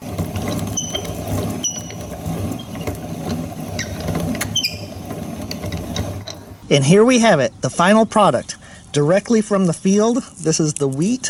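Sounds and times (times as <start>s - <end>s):
old-fashioned millstone grinder grinding cleaned wheat berries into flour: 0.0s - 8.4s
speech: 6.7s - 11.2s.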